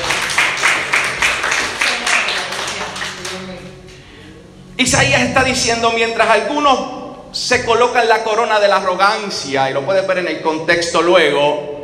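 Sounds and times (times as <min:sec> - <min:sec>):
audience applause: 0:00.0 - 0:03.5
speech: 0:04.8 - 0:11.7.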